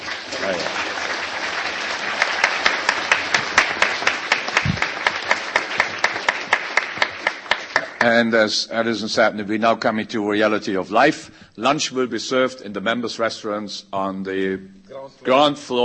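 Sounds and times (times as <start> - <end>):
audience applause at a gathering: 0.0 - 8.1
speech: 8.0 - 15.8.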